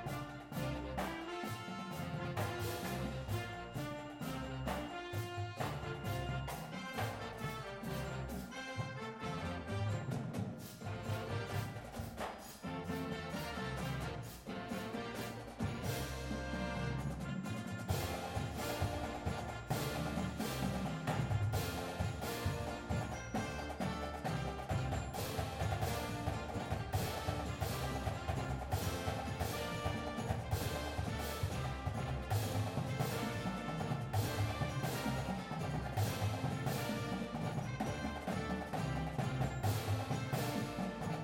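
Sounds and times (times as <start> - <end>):
full drumline playing: 0.0 - 41.2
music: 0.0 - 41.2.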